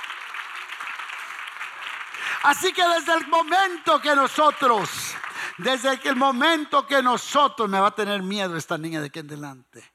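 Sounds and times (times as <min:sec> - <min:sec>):
audience applauding: 0:00.0 - 0:06.7
speech: 0:02.4 - 0:09.9.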